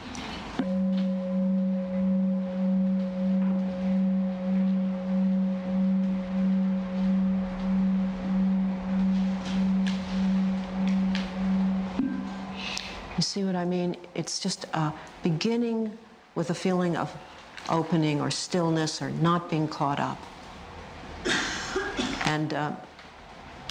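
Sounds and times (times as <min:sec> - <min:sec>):
gong ringing: 0:00.6 - 0:13.1
speech: 0:13.4 - 0:20.3, 0:22.3 - 0:22.9.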